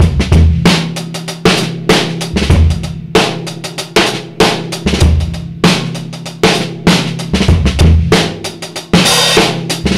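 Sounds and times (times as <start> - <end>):
boom bap drum loops: 0.0 - 9.9.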